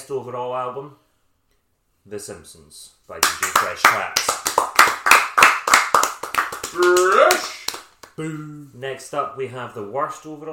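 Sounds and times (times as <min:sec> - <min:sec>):
speech: 0:00.1 - 0:01.0, 0:02.0 - 0:04.4, 0:06.7 - 0:07.6, 0:08.2 - 0:10.5
audience hand claps: 0:03.2 - 0:08.2.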